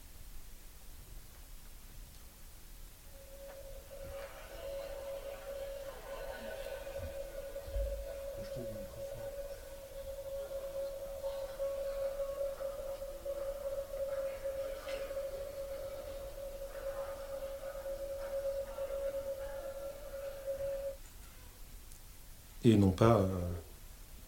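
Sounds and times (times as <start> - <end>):
faint shifting blips: 3.1 - 21.0
steady mid-pitched tone of a sound art piece at 551 MHz: 3.1 - 21.0
speech: 22.7 - 23.6.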